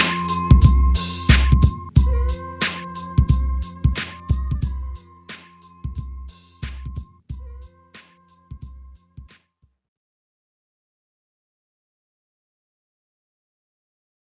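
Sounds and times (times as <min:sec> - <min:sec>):
breakbeat drums: 0:00.0 - 0:09.4.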